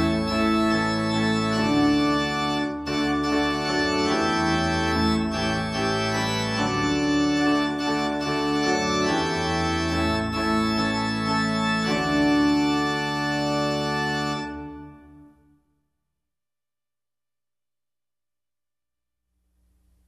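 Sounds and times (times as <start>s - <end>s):
hymn tune: 0.0s - 15.3s.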